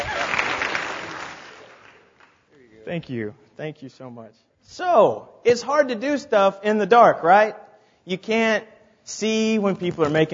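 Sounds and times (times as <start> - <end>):
audience applause: 0.0 - 2.4
speech: 2.8 - 10.3.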